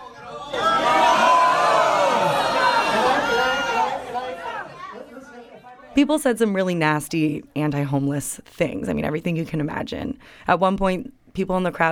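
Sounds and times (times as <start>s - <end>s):
crowd shouting and whooping, voting no: 0.0s - 5.7s
speech: 6.0s - 11.9s.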